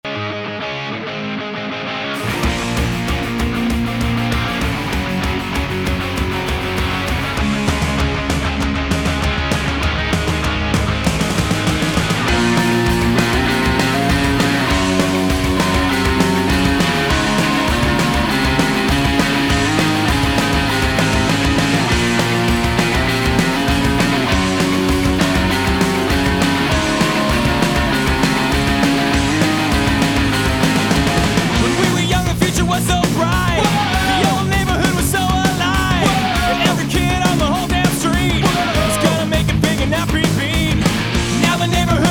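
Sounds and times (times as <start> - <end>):
metal music: 0.1 - 42.0.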